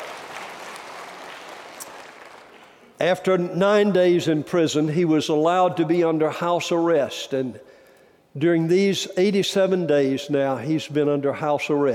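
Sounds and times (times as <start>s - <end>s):
church congregation clapping during a sermon: 0.0s - 3.0s
speech: 3.0s - 7.8s, 8.4s - 11.9s.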